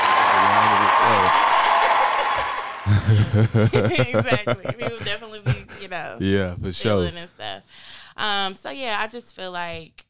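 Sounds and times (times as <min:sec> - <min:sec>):
round of applause: 0:00.0 - 0:03.5
laughter: 0:00.3 - 0:06.1
speech: 0:03.1 - 0:07.6, 0:08.2 - 0:10.0.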